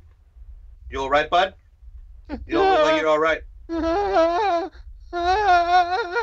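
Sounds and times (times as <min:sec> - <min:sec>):
speech: 0:00.9 - 0:01.6, 0:02.3 - 0:06.2
tabletop game narrator imitating a man sobbing uncontrollably: 0:02.3 - 0:03.0, 0:03.7 - 0:06.2.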